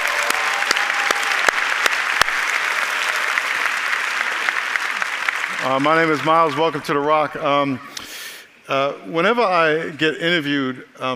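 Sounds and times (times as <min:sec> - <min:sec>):
audience applause at a church service: 0:00.0 - 0:07.2
speech: 0:05.6 - 0:08.0, 0:08.7 - 0:11.1.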